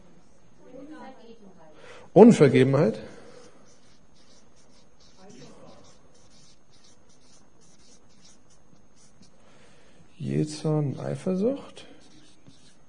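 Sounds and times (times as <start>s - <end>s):
speech: 1.2s - 3.2s, 10.6s - 11.9s
pen or pencil handwriting on a page: 3.4s - 9.3s, 12.0s - 12.8s.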